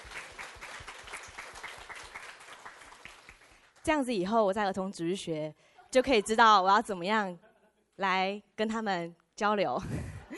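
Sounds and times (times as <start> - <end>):
audience applause: 0.0 - 3.6
speech: 3.9 - 10.1.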